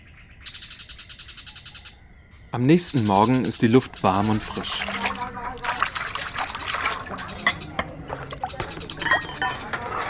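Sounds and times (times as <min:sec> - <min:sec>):
speech: 0:02.5 - 0:05.0
water while women wash dishes: 0:03.0 - 0:10.0.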